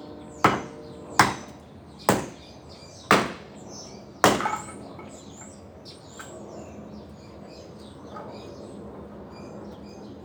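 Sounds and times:
birds chirping in a backyard: 0:00.0 - 0:10.2
low steady neighborhood hum: 0:00.0 - 0:10.2
sharp ringing knocks: 0:00.4 - 0:02.4, 0:03.1 - 0:03.5, 0:04.2 - 0:04.8.

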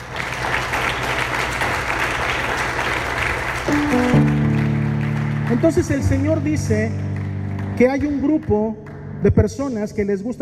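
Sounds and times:
loud audience applause: 0:00.0 - 0:09.0
sustained keyboard chords: 0:03.5 - 0:10.0
speech: 0:03.7 - 0:04.3, 0:05.5 - 0:07.0, 0:07.8 - 0:10.4.

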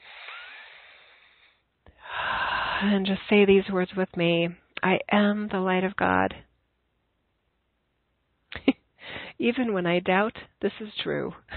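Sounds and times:
slow deep breath during a guided meditation: 0:00.0 - 0:03.0, 0:09.0 - 0:09.4
speech: 0:02.8 - 0:06.5, 0:09.4 - 0:11.5.

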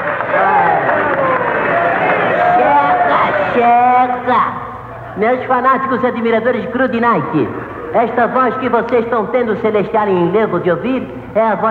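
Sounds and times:
many voices shouting together: 0:00.0 - 0:03.7
crowd cheering and clapping: 0:00.0 - 0:04.3
speech: 0:05.2 - 0:11.6.

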